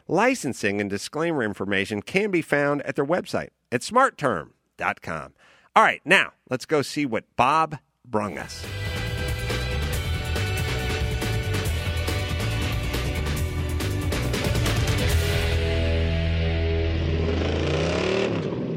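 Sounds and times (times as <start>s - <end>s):
speech: 0.1s - 8.8s
yellow Chevrolet Corvette Stingray sports car engine rumbling at Bondurant Driving School: 8.9s - 18.6s.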